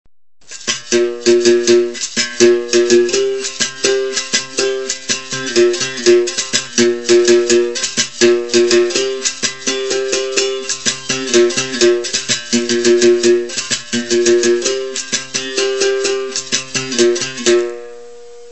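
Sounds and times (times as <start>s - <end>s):
capoeira rhythm: 0.4s - 17.8s.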